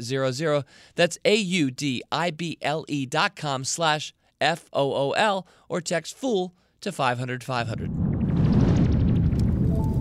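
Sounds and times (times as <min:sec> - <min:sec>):
speech: 0:00.0 - 0:07.9
crackling campfire: 0:08.0 - 0:09.9.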